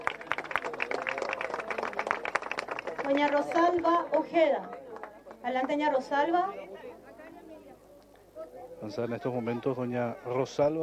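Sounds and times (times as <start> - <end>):
applause from beneficiaries: 0.0 - 4.0
speech: 3.1 - 4.8, 5.4 - 6.8, 8.8 - 10.8.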